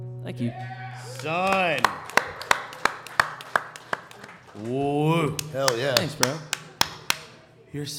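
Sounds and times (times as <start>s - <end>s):
speech: 0.3s - 2.1s, 4.5s - 6.5s, 7.7s - 7.9s
sharp hand claps: 1.1s - 7.5s.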